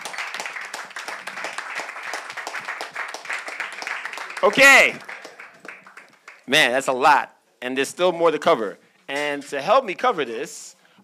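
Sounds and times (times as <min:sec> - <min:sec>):
audience applause: 0:00.0 - 0:06.4
speech: 0:04.4 - 0:05.1, 0:06.5 - 0:11.0.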